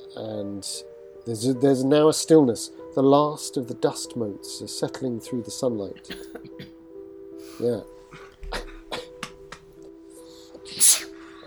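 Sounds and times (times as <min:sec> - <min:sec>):
speech: 0:00.2 - 0:06.6, 0:07.5 - 0:08.2
person sneezing: 0:10.7 - 0:11.2.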